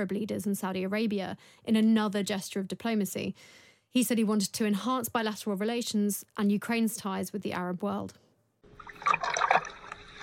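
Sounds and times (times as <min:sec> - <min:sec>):
speech: 0:00.0 - 0:08.2, 0:09.0 - 0:09.4
floodwater trickling and dripping: 0:08.6 - 0:10.2.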